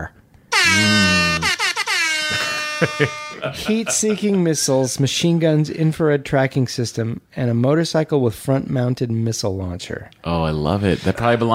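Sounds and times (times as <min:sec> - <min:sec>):
speech: 0:00.0 - 0:01.1, 0:02.8 - 0:11.5
air horn sound effect from phone app: 0:00.5 - 0:03.4
laughter: 0:00.7 - 0:01.5, 0:02.2 - 0:04.7.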